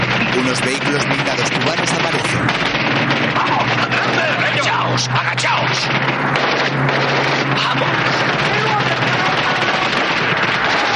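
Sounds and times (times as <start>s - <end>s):
gunfire barrage in a 1980s war film: 0.0s - 10.9s
speech: 0.4s - 3.6s, 4.9s - 8.6s.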